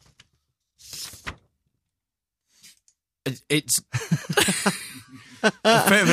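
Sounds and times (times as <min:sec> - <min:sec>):
A4 paper pulled from an envelope: 0:00.8 - 0:01.4
speech: 0:03.3 - 0:04.9, 0:05.7 - 0:06.1
laughter: 0:03.8 - 0:06.1.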